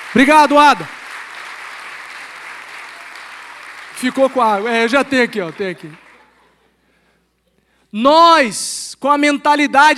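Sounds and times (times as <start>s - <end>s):
audience applause: 0.0s - 6.4s
speech: 0.1s - 1.0s, 4.0s - 6.0s, 7.9s - 9.9s.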